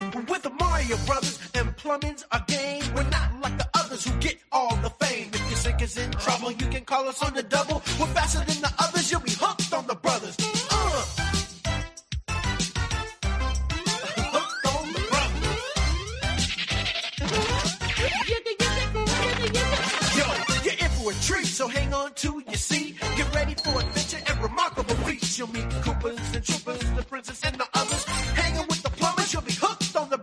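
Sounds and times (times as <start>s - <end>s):
rap music: 0.0s - 30.2s
laughter: 17.2s - 21.0s.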